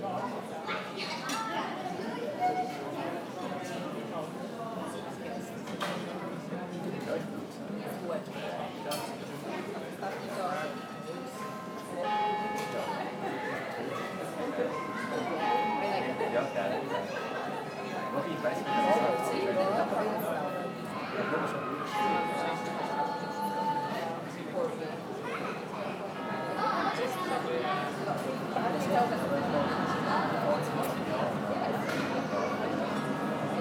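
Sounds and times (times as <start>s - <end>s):
exterior street cafe ambience in Zurich Switzerland: 0.0s - 33.5s.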